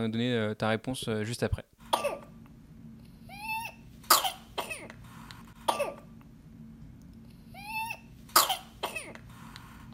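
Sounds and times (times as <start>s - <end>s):
speech: 0.0s - 1.7s
infant's whooping cough with inspiratory whoop: 1.9s - 2.4s, 3.4s - 5.0s, 5.7s - 6.1s, 7.7s - 9.2s.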